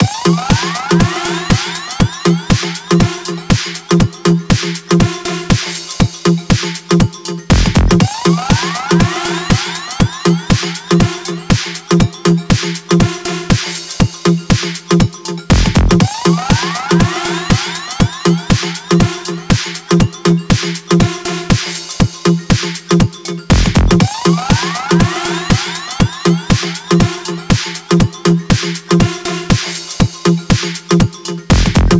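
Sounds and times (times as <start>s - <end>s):
disco loop: 0.0s - 31.9s.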